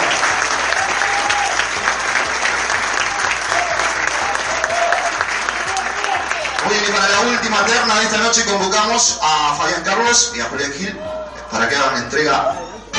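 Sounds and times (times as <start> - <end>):
audience applause: 0.0 - 8.2
speech: 7.5 - 12.8.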